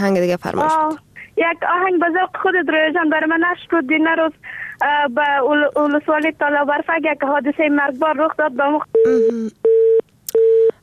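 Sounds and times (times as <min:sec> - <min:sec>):
speech: 0:00.0 - 0:09.6
busy tone on a phone line after a radio call-in caller is cut off: 0:09.0 - 0:10.8.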